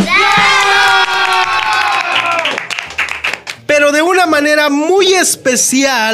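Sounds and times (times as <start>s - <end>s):
audience applause and cheering: 0.0s - 3.6s
speech: 4.4s - 6.1s.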